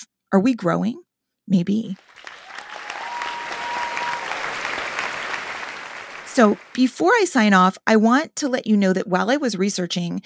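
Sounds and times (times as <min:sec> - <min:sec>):
speech: 0:00.0 - 0:02.2, 0:06.4 - 0:10.2
group applauding: 0:02.0 - 0:07.0.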